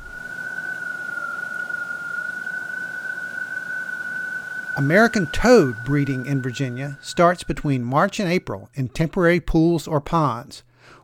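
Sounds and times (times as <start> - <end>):
gray tree frog calling: 0.0 - 8.1
speech: 4.8 - 11.0.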